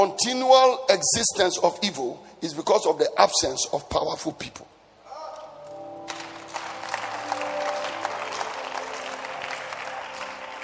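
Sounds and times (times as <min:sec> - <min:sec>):
speech: 0:00.0 - 0:04.8
faint sustained musical tones: 0:05.4 - 0:10.6
audience clapping: 0:05.6 - 0:10.6.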